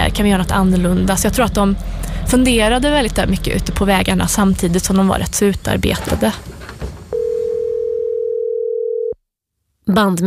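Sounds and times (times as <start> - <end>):
speech: 0.2 - 6.6, 9.9 - 10.2
telephone dial tone: 7.2 - 9.2.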